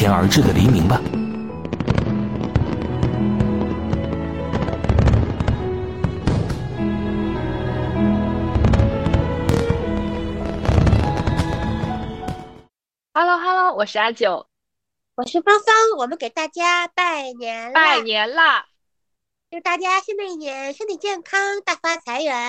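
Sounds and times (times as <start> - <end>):
speech: 0.0 - 1.2, 13.8 - 14.5, 15.2 - 18.7, 19.5 - 22.4
steady melodic backdrop: 0.0 - 12.7
fireworks exploding: 0.3 - 12.7.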